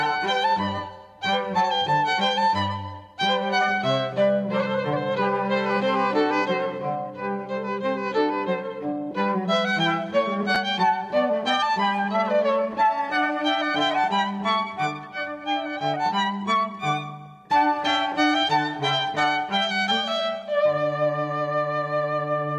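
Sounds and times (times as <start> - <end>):
flute trio playing a vivace piece: 0.0 - 7.6, 8.8 - 22.5.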